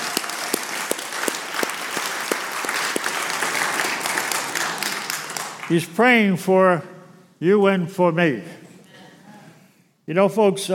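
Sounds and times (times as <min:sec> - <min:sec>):
audience applause: 0:00.0 - 0:05.8
speech: 0:05.7 - 0:08.6, 0:10.1 - 0:10.7.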